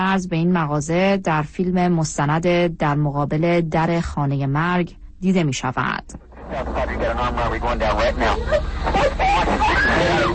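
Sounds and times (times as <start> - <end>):
speech: 0.0 - 10.3
steady hum: 0.0 - 10.3
laughter: 6.5 - 10.3
woman screaming over a phone line on emergency call: 9.6 - 10.3.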